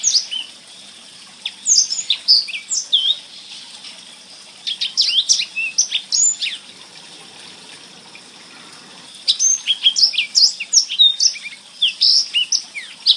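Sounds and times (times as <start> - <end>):
blackthroat bird singing: 1.4 - 3.6, 4.6 - 6.7, 8.4 - 13.1.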